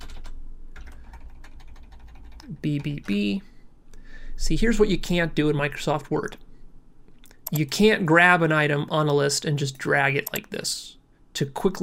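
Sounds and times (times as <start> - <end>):
typing on a computer keyboard: 0.0 - 3.2
low steady hum: 0.0 - 11.8
speech: 2.5 - 3.5, 4.4 - 6.4, 7.5 - 11.8.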